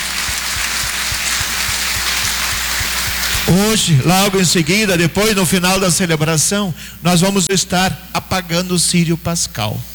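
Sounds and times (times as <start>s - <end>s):
audience applauding: 0.0s - 4.0s
speech: 3.5s - 9.9s.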